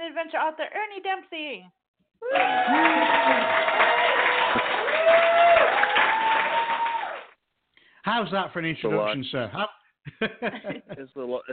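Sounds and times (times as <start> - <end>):
speech: 0.2 - 5.8, 8.1 - 11.5
loud clapping welcoming action adventure author Ernie Dempsey: 2.2 - 7.4
laughter: 10.1 - 11.2.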